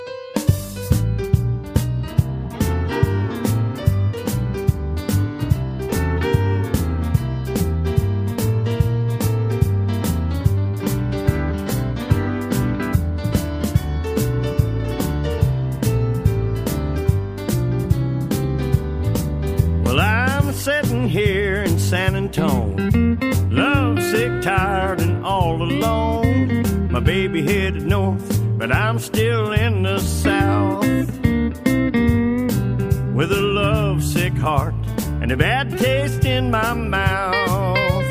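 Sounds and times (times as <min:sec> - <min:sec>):
blues music: 0:00.0 - 0:38.1.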